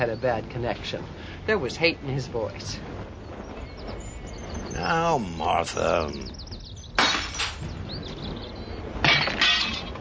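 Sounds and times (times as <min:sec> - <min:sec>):
speech: 0:00.0 - 0:03.1, 0:04.8 - 0:06.4
dishes smashing and shattering: 0:07.0 - 0:07.6, 0:09.0 - 0:10.0
clinking debris of broken dishes: 0:07.0 - 0:07.8, 0:09.0 - 0:10.0.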